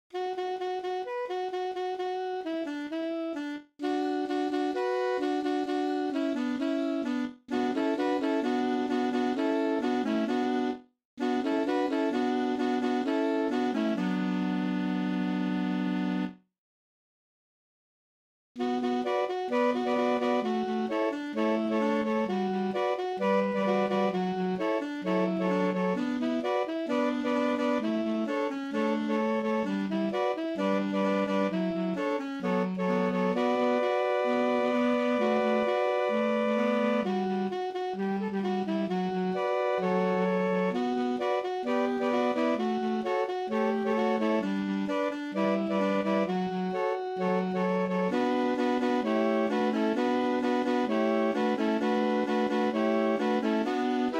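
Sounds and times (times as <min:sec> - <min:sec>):
Hanukkah music mashup: 0:00.1 - 0:16.3, 0:18.6 - 0:54.1.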